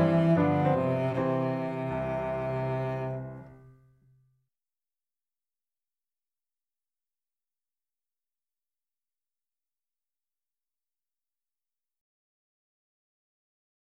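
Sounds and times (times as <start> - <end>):
cello playing a bourree: 0.0 - 3.6.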